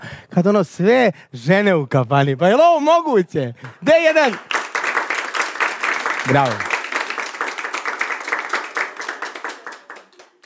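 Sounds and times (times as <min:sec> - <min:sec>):
speech: 0:00.4 - 0:04.6, 0:06.3 - 0:06.7
women in a tavern audience clapping: 0:03.6 - 0:10.4.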